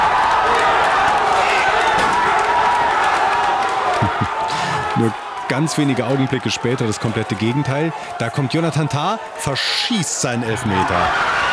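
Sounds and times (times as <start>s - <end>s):
football fans cheering an equaliser at Saarbrücker Osthafen: 0.0s - 11.5s
laughter: 3.6s - 6.8s
speech: 5.0s - 11.5s.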